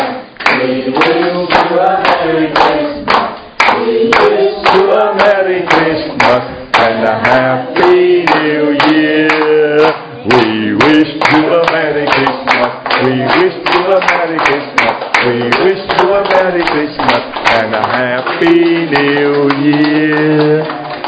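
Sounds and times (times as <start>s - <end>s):
group clapping in rhythm to a Christmas carol: 0.0s - 21.0s
people singing a Christmas carol: 0.0s - 21.0s.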